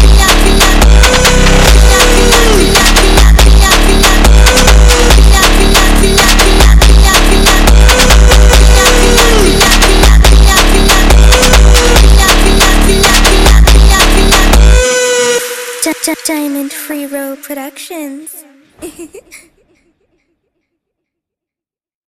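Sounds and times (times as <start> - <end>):
funk music: 0.0 - 14.8, 15.8 - 18.5.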